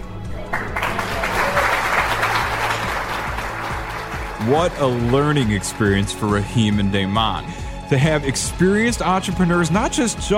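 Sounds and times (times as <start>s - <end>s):
applause from a panel of judges: 0.2s - 6.5s
speech: 4.5s - 10.3s.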